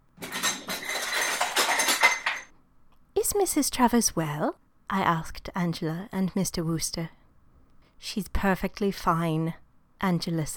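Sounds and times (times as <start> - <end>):
pots and pans clattering: 0.2 - 2.5
speech: 3.3 - 7.2, 8.0 - 10.5.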